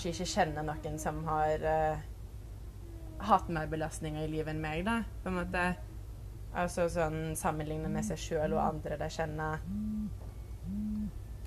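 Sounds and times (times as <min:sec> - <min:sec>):
speech: 0:00.0 - 0:02.1, 0:03.2 - 0:05.9, 0:06.5 - 0:11.2
wake-up alarm hum-like tones: 0:07.8 - 0:08.9, 0:09.6 - 0:11.4.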